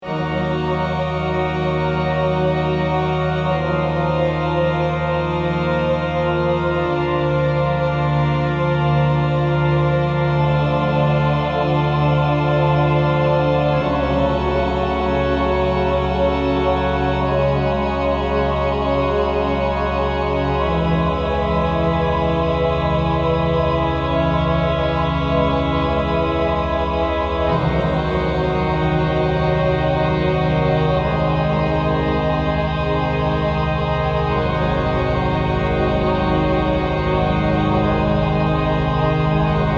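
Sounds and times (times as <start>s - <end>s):
gloomy cathedral ambient music: 0.0s - 39.7s.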